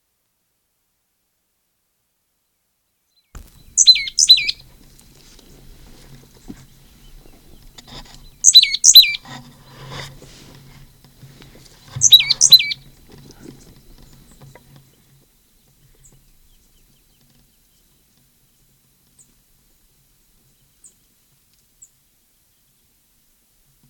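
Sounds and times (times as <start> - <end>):
high slightly melodic bird calls: 3.4 - 4.7, 8.2 - 9.2, 11.9 - 12.9.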